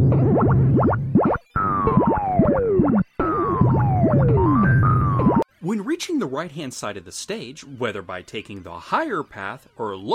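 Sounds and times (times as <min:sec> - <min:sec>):
springs bouncing across a platform in a video game: 0:00.0 - 0:05.4
speech: 0:06.0 - 0:10.1.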